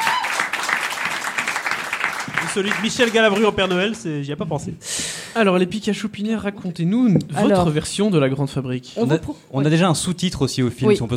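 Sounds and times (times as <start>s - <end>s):
applause: 0.0s - 4.1s
speech: 2.6s - 11.1s.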